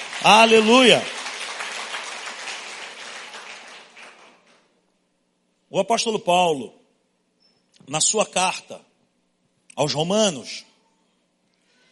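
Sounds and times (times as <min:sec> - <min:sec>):
audience applause: 0:00.0 - 0:04.6
speech: 0:00.2 - 0:01.2, 0:05.7 - 0:06.8, 0:07.8 - 0:08.9, 0:09.8 - 0:10.7.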